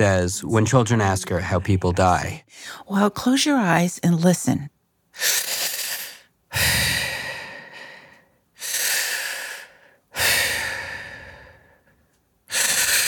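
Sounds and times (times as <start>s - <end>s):
speech: 0.0s - 5.3s
slow heavy rasping human breathing: 5.6s - 13.0s.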